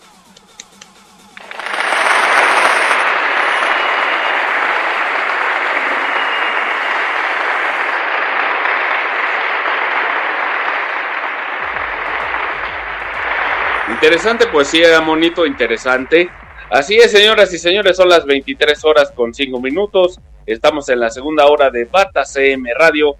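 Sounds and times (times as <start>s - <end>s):
audience applause: 1.4s - 17.4s
speech: 14.0s - 23.1s.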